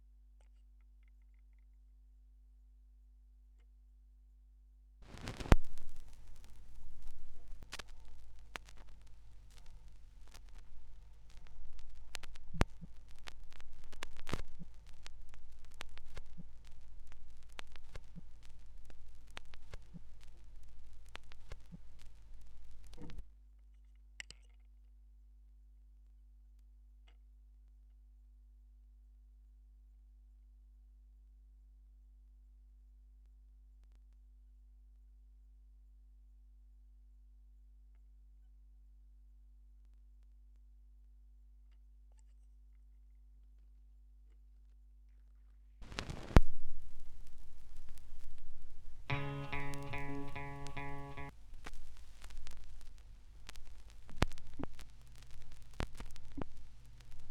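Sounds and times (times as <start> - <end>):
vinyl record noise: 5.0 - 23.3, 45.8 - 57.2.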